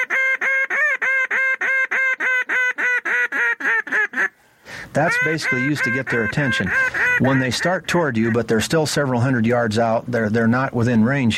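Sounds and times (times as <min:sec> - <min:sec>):
duck call highball, long loud screaming call: 0:00.0 - 0:04.4, 0:05.0 - 0:08.5
speech: 0:05.0 - 0:11.3.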